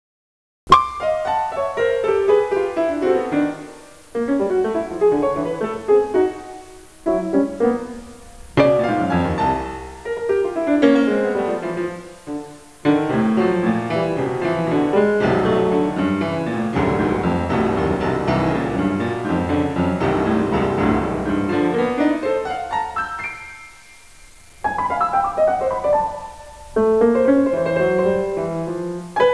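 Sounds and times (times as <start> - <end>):
piano: 0.7 - 29.3.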